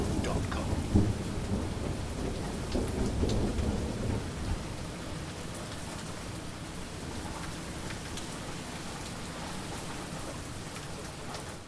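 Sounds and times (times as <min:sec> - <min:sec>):
thunder in Manchester: 0:00.0 - 0:05.0
heavy rain in Manchester: 0:00.0 - 0:11.6.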